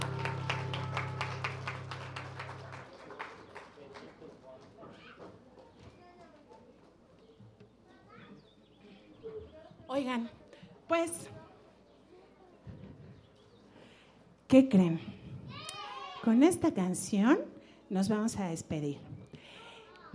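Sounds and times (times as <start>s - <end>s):
applause for the mothers at a children's show: 0.0s - 4.9s
speech: 9.9s - 11.4s, 14.5s - 15.1s, 16.2s - 19.1s.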